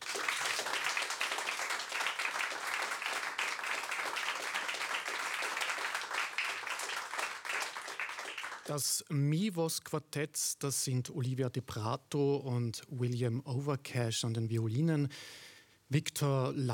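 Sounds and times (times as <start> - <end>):
audience applause: 0.0 - 8.7
speech: 8.7 - 16.7.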